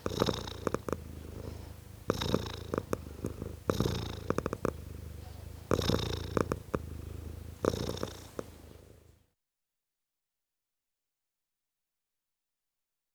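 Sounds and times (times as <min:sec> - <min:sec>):
tom cat purring: 0:00.0 - 0:09.2.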